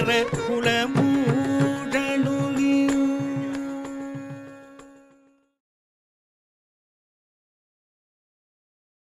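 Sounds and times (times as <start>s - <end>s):
Carnatic classical singing: 0.0s - 5.6s.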